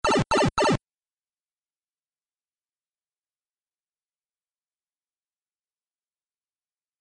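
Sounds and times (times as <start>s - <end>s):
shrinking sound effect: 0.0s - 0.8s.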